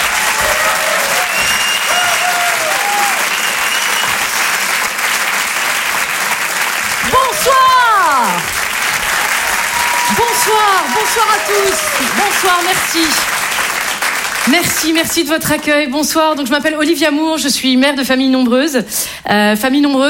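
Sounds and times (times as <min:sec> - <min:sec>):
people cheering: 0:00.0 - 0:14.8
audience applause welcoming a comedian at a stand-up show: 0:00.0 - 0:15.4
speech: 0:10.5 - 0:13.4, 0:14.4 - 0:20.0.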